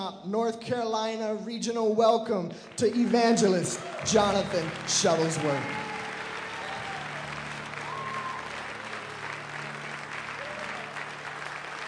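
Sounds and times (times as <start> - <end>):
speech: 0.0 - 5.9
audience standing ovation applause: 2.6 - 11.8.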